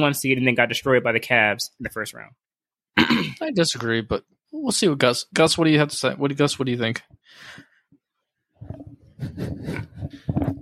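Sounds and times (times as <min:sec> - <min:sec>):
speech: 0:00.0 - 0:07.7, 0:08.6 - 0:10.6
throat clearing: 0:03.0 - 0:03.4.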